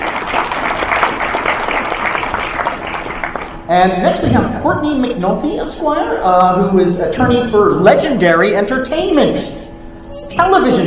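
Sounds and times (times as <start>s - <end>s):
audience applause: 0.0s - 3.6s
speech: 3.7s - 9.6s, 10.4s - 10.8s.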